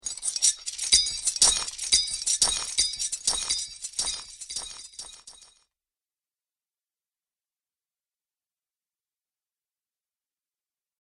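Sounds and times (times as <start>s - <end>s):
metal chains: 0.0s - 5.6s.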